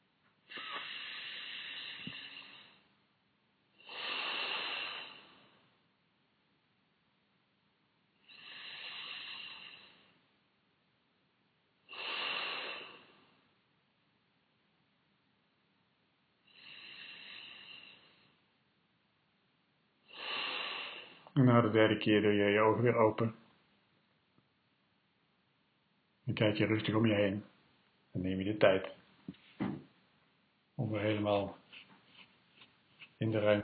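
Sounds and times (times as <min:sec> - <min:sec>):
deep breathing in and out during a relaxation exercise: 0:00.5 - 0:02.9, 0:03.8 - 0:05.7, 0:08.2 - 0:10.2, 0:11.9 - 0:13.4, 0:16.4 - 0:18.4, 0:20.1 - 0:21.4
speech: 0:21.4 - 0:23.4, 0:26.3 - 0:27.5, 0:28.1 - 0:29.9, 0:30.8 - 0:31.8, 0:33.2 - 0:33.6.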